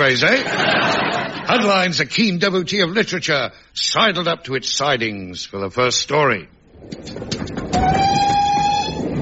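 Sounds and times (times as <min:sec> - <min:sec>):
speech: 0:00.0 - 0:00.9, 0:01.5 - 0:08.0
laughter: 0:00.3 - 0:01.7
long high train whistle: 0:07.7 - 0:09.1.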